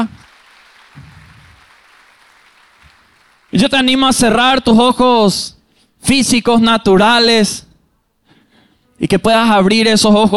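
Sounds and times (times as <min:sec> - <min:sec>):
audience applause: 0:00.0 - 0:03.6
speech: 0:03.5 - 0:07.7, 0:09.0 - 0:10.3.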